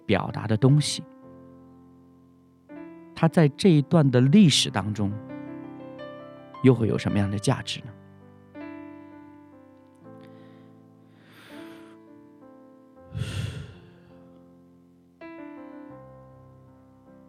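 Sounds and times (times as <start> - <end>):
speech: 0.1 - 1.1, 3.2 - 5.3, 6.6 - 8.0
person breathing slowly with soft sighs: 10.2 - 12.1, 13.1 - 14.3.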